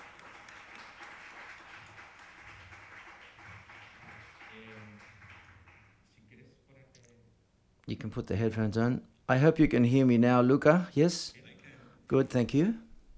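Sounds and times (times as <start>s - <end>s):
audience applause: 0.0s - 6.0s
speech: 7.9s - 11.4s, 12.1s - 12.8s.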